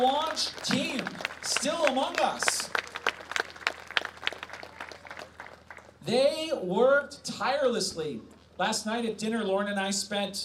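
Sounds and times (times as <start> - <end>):
speech: 0.0 - 2.5, 6.1 - 10.4
audience applause: 0.0 - 5.9.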